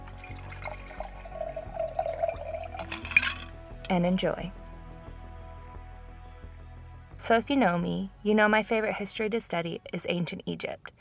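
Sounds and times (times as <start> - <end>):
drink with lime juice, cayenne pepper and ground ginger being poured: 0.0 - 5.4
speech: 3.9 - 4.6, 7.3 - 10.9.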